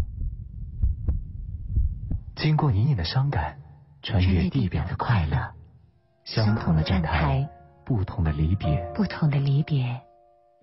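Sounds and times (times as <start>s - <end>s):
heartbeat sound effect: 0.0s - 2.4s
speech: 2.4s - 5.6s, 6.3s - 10.1s.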